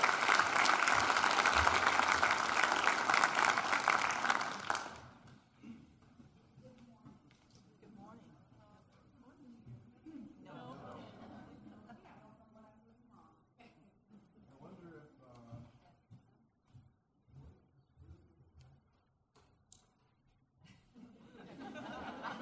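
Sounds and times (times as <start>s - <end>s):
audience applause welcoming a speaker at a morning talk: 0.0s - 5.3s
laughter: 10.6s - 12.2s, 20.6s - 22.3s.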